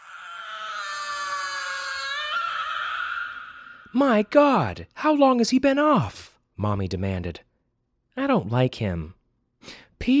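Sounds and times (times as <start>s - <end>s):
robot baby screeching: 0.0s - 4.0s
speech: 3.9s - 7.5s, 8.2s - 10.1s.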